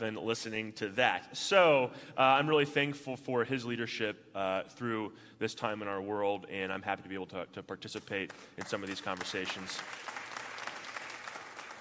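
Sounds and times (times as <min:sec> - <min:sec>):
speech: 0:00.0 - 0:10.2
audience applause: 0:08.6 - 0:11.7.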